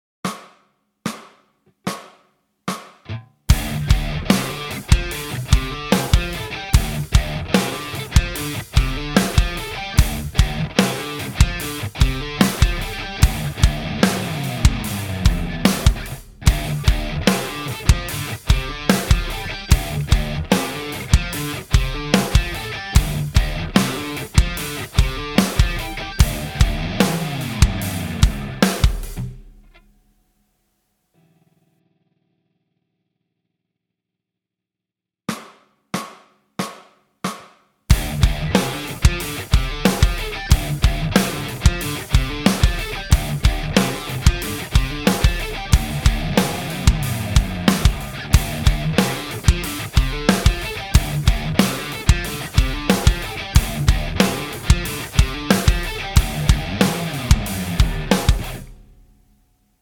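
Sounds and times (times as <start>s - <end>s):
backing track: 3.5s - 29.4s, 37.9s - 59.2s.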